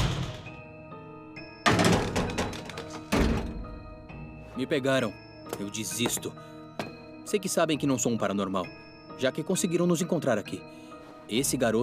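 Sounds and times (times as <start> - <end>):
door being opened with tonal creak: 1.6 - 4.0
speech: 4.6 - 6.5, 7.3 - 11.8.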